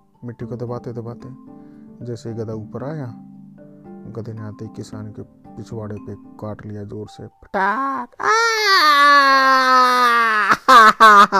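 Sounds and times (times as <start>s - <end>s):
speech: 0.2s - 3.3s, 4.0s - 9.5s, 11.0s - 11.3s
voice imitating a man's scream of pain: 7.7s - 10.7s.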